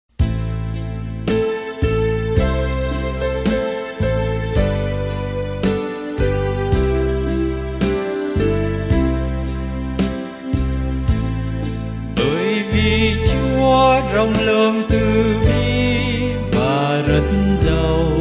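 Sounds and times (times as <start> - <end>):
bass: 0.1 - 18.1.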